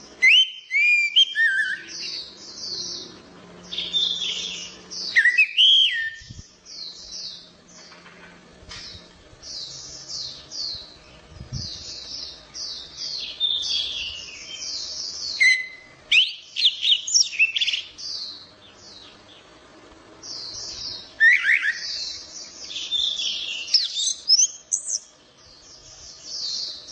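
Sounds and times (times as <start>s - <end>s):
orange-headed thrush singing: 0.2s - 2.2s, 3.7s - 7.2s, 13.1s - 17.9s, 21.1s - 25.1s.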